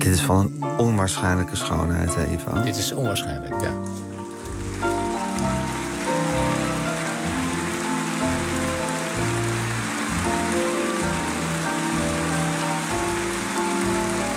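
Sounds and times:
speech: 0.2 - 4.1
audience clapping in a recording: 3.8 - 14.3.

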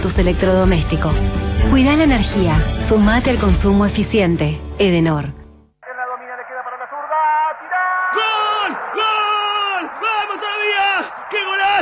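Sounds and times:
speech: 0.0 - 5.4
people yelling a football goal celebration: 7.0 - 11.8.

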